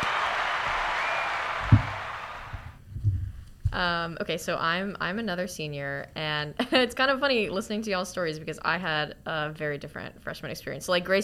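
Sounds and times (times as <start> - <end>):
applause: 0.0 - 2.8
speech: 3.8 - 11.2.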